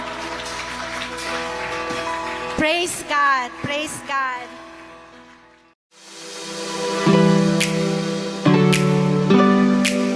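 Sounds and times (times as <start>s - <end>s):
crowd clapping: 0.0s - 4.4s
speech: 2.6s - 4.6s
sustained musical tones like a held keyboard chord: 6.5s - 10.1s.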